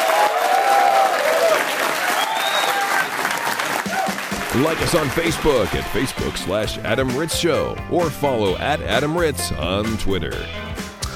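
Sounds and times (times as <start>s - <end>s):
audience clapping: 0.0s - 6.7s
speech: 4.6s - 10.8s.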